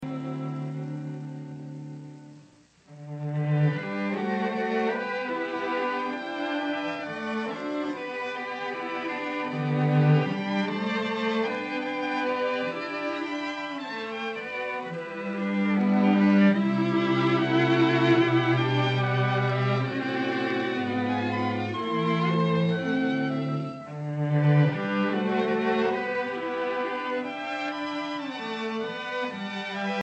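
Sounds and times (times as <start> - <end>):
string quartet playing: 0.0 - 30.0.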